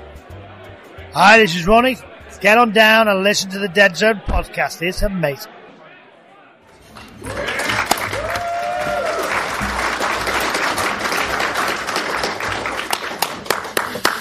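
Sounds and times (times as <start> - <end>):
speech: 1.2 - 5.6
audience applause: 7.0 - 14.1
whoop or whistle: 8.1 - 9.3.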